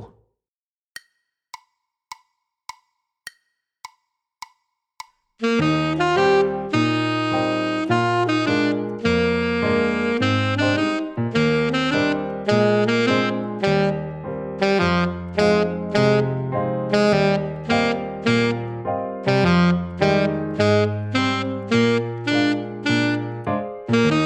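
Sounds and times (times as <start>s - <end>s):
alto saxophone etude: 5.4s - 24.2s.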